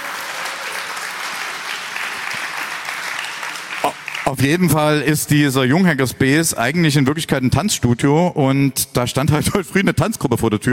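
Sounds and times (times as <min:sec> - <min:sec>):
audience applause: 0:00.0 - 0:04.5
speech: 0:03.8 - 0:10.7.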